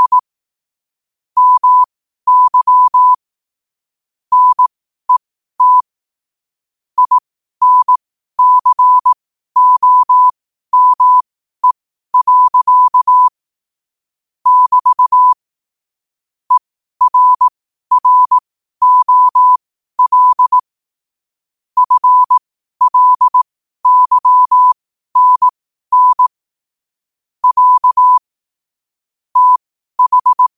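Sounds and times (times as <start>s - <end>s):
morse code at 5 wpm: 0.0s - 0.2s, 1.4s - 3.2s, 4.3s - 4.7s, 5.6s - 5.9s, 7.0s - 13.3s, 14.5s - 15.4s, 16.5s - 20.7s, 21.8s - 26.4s, 27.4s - 28.2s, 29.4s - 30.5s.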